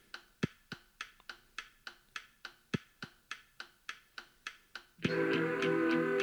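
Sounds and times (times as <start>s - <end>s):
metronome ticking: 0.0s - 6.2s
loud music: 5.1s - 6.2s.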